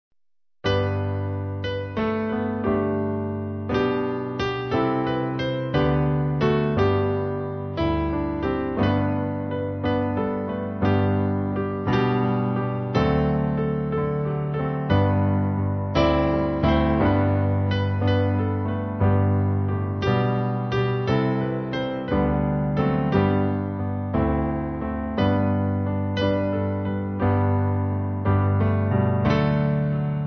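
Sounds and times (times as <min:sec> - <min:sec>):
piano playing a hymn: 0:00.7 - 0:30.2.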